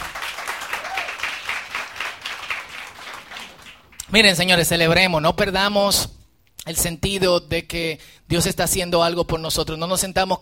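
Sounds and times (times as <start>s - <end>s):
audience applauding: 0.0s - 4.1s
speech: 4.1s - 10.4s.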